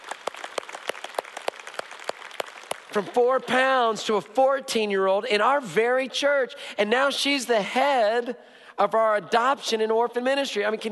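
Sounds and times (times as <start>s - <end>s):
church congregation applauding: 0.0s - 3.6s
speech: 2.9s - 10.9s.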